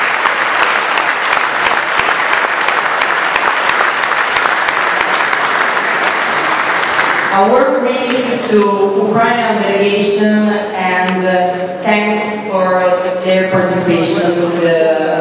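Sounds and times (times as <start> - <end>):
audience applause: 0.0 - 7.4
speech: 7.4 - 14.9.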